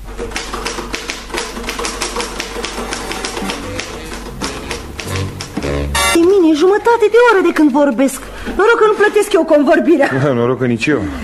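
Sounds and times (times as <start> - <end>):
typewriter typing: 0.1 - 6.5
speech: 6.5 - 11.2.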